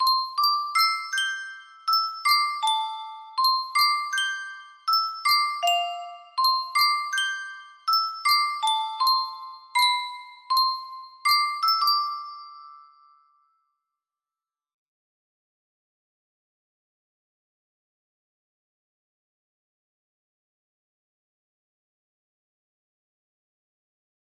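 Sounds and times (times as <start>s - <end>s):
music box melody: 0.0s - 13.6s.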